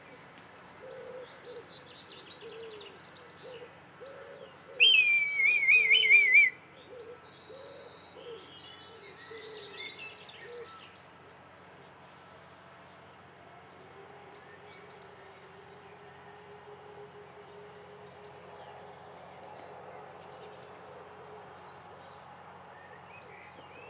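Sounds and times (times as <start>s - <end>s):
red kite giving a wavering tremulous whistle: 4.8s - 6.5s.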